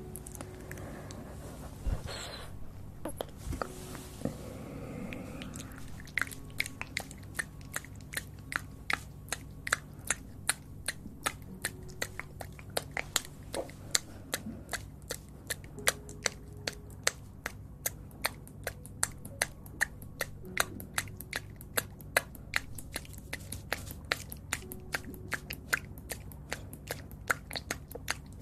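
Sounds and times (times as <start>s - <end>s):
low steady hum: 0.0s - 28.4s
soft breathy rustling: 0.3s - 6.3s
sharp wet mouth clicks and smacks: 5.1s - 28.4s.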